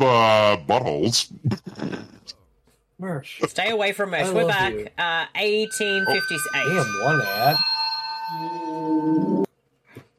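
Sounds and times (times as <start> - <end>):
speech: 0.0 - 1.9, 3.0 - 7.7
doorbell ringing: 5.4 - 9.5.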